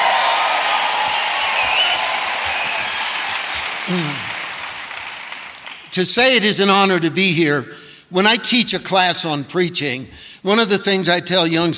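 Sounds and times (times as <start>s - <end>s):
crowd applauding: 0.0s - 6.0s
speech: 3.9s - 4.2s, 6.0s - 11.7s
brief vocal sound: 3.9s - 4.4s.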